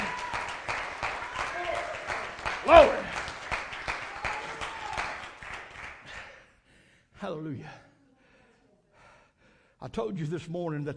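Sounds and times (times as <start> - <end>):
audience clapping hands: 0.0 - 6.4
speech: 7.3 - 7.9, 9.9 - 10.9.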